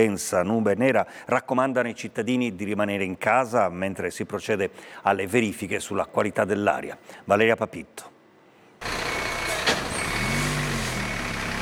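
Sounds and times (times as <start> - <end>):
speech: 0.0 - 8.2
fire service trucks moving in an industrial zone: 8.8 - 11.6.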